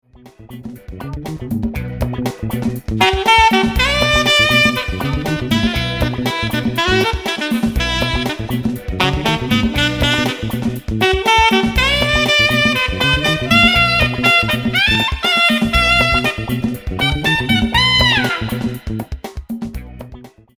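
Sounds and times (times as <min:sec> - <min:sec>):
funk alto saxophone: 0:00.6 - 0:19.4.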